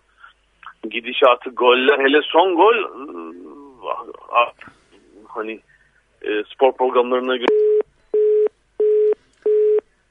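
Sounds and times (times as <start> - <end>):
speech: 0.9 - 7.6
telephone busy signal after a call dropped: 7.5 - 10.0.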